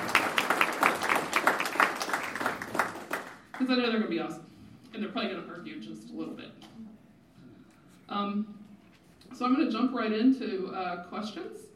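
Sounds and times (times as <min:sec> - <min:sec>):
room full of people clapping: 0:00.0 - 0:03.7
speech: 0:03.6 - 0:06.6, 0:08.1 - 0:08.6, 0:09.4 - 0:11.7.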